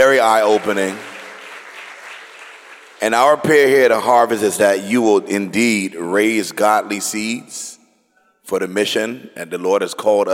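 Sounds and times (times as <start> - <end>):
speech: 0.0 - 1.1, 3.0 - 7.8, 8.5 - 10.3
audience applause: 0.0 - 3.2.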